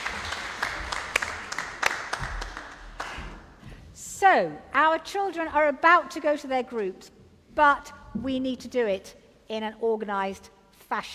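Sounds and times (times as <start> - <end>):
audience round of applause: 0.0 - 3.4
speech: 4.2 - 11.1.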